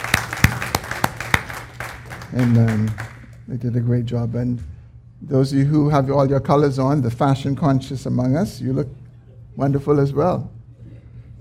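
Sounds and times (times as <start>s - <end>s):
audience applause: 0.0s - 3.3s
speech: 2.3s - 9.0s, 9.6s - 10.6s.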